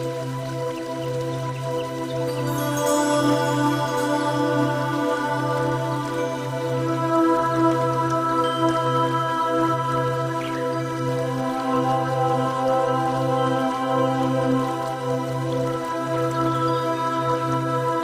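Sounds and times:
water noise in nature: 0:00.0 - 0:18.0.

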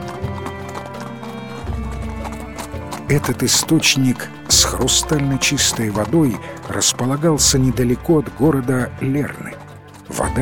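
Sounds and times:
galloping horse hoofbeats pulling a chariot: 0:00.0 - 0:10.4
speech: 0:03.1 - 0:10.4.

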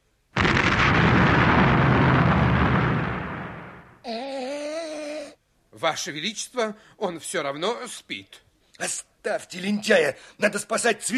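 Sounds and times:
artillery battery firing a volley: 0:00.4 - 0:04.0
speech: 0:05.8 - 0:11.1.

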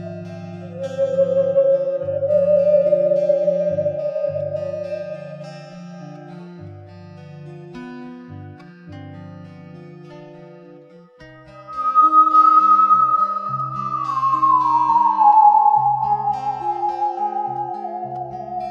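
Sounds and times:
theremin: 0:00.0 - 0:06.4, 0:11.6 - 0:18.6.

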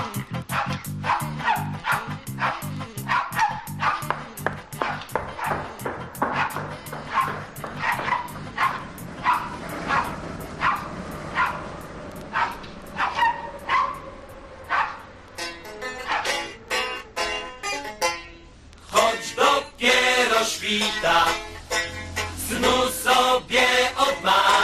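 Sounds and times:
dog yipping as it is ordered into its kennel: 0:00.5 - 0:05.7, 0:06.3 - 0:11.7, 0:12.3 - 0:14.1, 0:14.7 - 0:15.0, 0:16.0 - 0:16.6
low tonal backing: 0:03.7 - 0:24.6.

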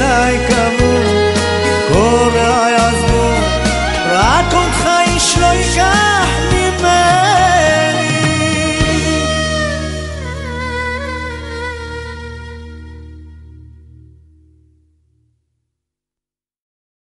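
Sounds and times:
crying violin: 0:00.1 - 0:13.3.

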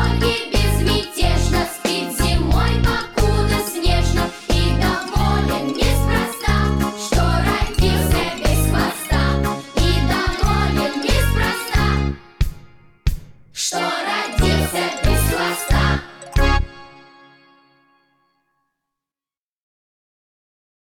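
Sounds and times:
children's choir singing: 0:00.0 - 0:12.4, 0:13.6 - 0:17.0.

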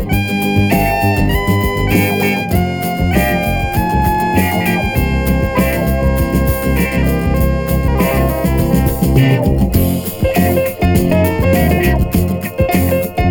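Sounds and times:
Moog synthesizer rock music: 0:00.0 - 0:13.2.

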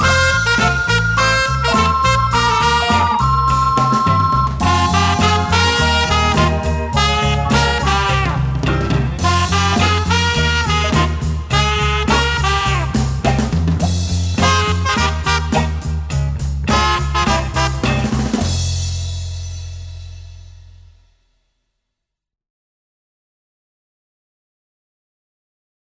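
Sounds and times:
party music: 0:00.0 - 0:18.6.

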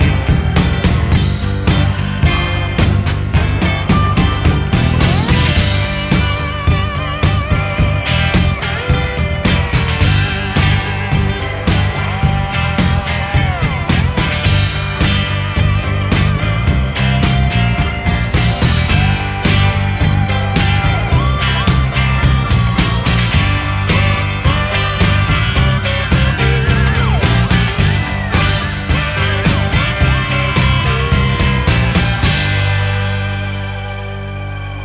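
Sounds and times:
piano break: 0:00.0 - 0:34.8.

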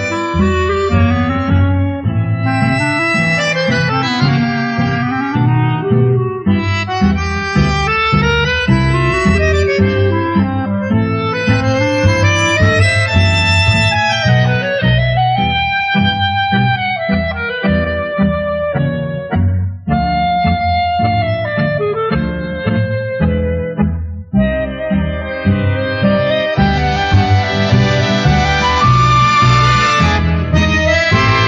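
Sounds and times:
instrumental quartet playing: 0:00.0 - 0:31.4.

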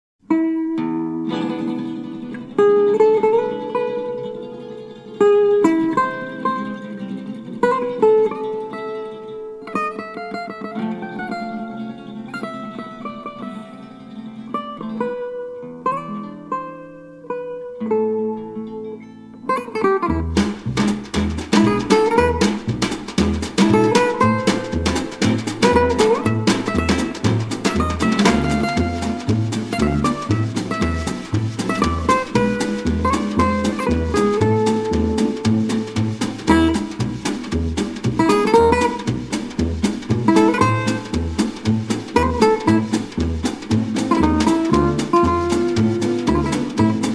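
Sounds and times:
jazz guitar arrangement: 0:00.3 - 0:47.1.

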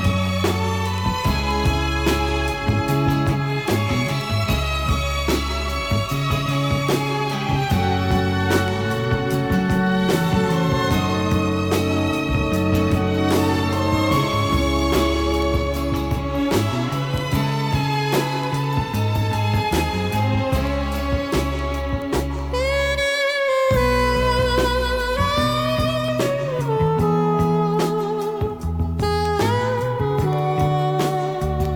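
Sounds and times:
saxophone: 0:00.0 - 0:31.7.

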